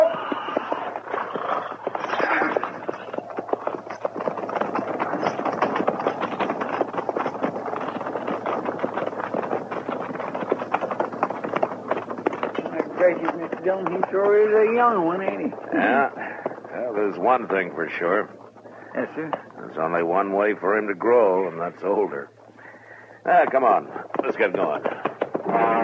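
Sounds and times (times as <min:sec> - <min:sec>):
cavalry company's horses' hooves clip-clopping at a walk: 0:00.0 - 0:25.8
speech: 0:13.7 - 0:16.2, 0:16.9 - 0:18.4, 0:19.0 - 0:22.4, 0:23.2 - 0:24.9.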